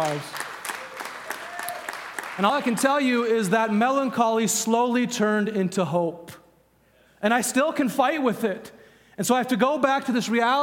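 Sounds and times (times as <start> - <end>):
speech: 0.0 - 0.4, 2.4 - 6.4, 7.2 - 10.6
audience clapping: 0.0 - 3.0.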